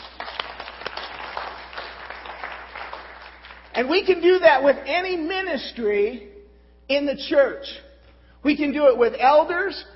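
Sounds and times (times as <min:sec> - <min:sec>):
audience hand clapping: 0:00.0 - 0:03.8
speech: 0:03.8 - 0:06.3, 0:06.9 - 0:07.8, 0:08.4 - 0:09.9.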